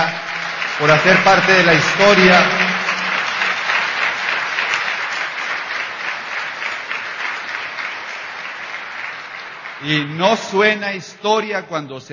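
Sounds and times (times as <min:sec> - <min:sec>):
loud audience applause: 0:00.0 - 0:11.2
speech: 0:00.8 - 0:02.7, 0:09.8 - 0:12.1.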